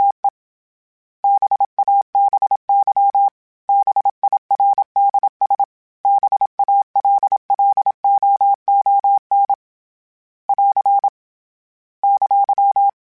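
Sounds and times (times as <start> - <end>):
Morse code CW code groups: 1.2 - 9.5, 10.5 - 11.1, 12.0 - 12.9.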